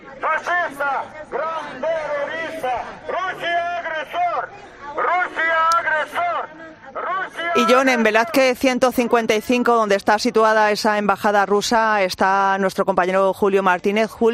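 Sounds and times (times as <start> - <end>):
protesters shouting outside embassy in rain: 0.0 - 8.6
speech: 7.6 - 14.3.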